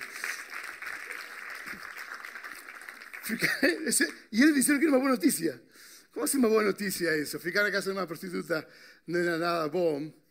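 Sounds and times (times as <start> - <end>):
audience applause: 0.0 - 4.2
laughter: 3.2 - 4.1
speech: 3.3 - 10.2.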